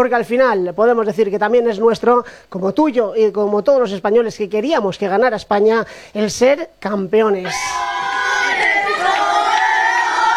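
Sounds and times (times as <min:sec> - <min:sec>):
speech: 0:00.0 - 0:07.9
crowd shouting victory chant in streets: 0:07.4 - 0:10.3.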